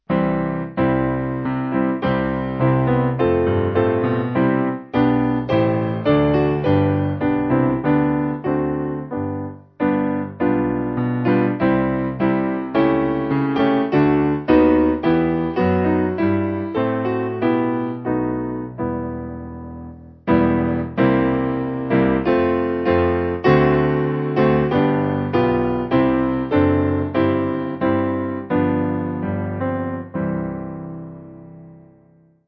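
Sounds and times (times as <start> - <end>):
piano backing: 0.0 - 32.4.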